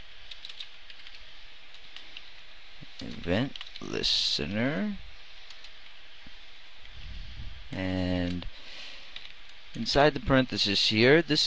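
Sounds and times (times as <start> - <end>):
computer keyboard typing as code is entered into a Flash actions panel: 0.2 - 2.3, 3.0 - 3.9
speech: 3.0 - 5.1, 7.7 - 8.7, 9.8 - 11.4.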